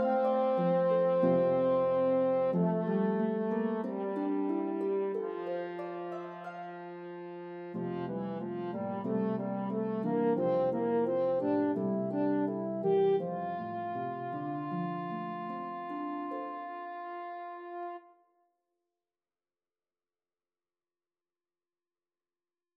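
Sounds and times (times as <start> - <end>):
harp melody: 0.0 - 18.0
horn: 0.0 - 18.2.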